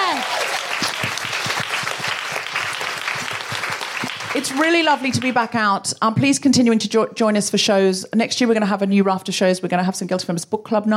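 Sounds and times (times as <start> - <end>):
crowd applauding: 0.0 - 5.5
speech: 4.4 - 10.9.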